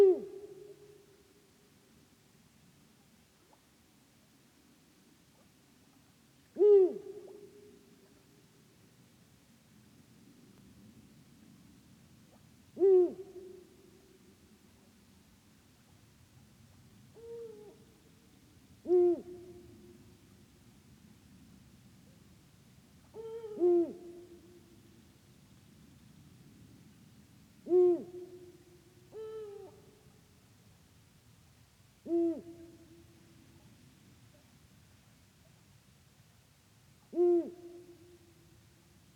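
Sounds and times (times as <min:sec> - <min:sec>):
Bubo bubo eagle owl: 0:00.0 - 0:00.9, 0:06.6 - 0:07.8, 0:12.8 - 0:13.7, 0:17.1 - 0:17.9, 0:18.8 - 0:19.9, 0:23.1 - 0:24.6, 0:27.6 - 0:30.0, 0:32.0 - 0:33.1, 0:37.1 - 0:38.2.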